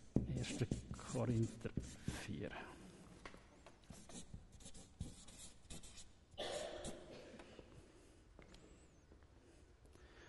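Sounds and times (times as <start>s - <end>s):
pen writing out a Bible reference: 0.2s - 2.3s, 3.9s - 6.1s
speech: 0.4s - 2.8s.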